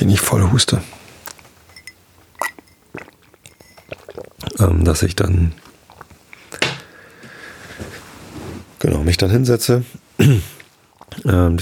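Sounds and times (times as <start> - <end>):
speech: 0.0 - 1.0, 4.6 - 5.7, 9.0 - 10.5, 11.3 - 11.6
person sipping water: 0.8 - 7.3.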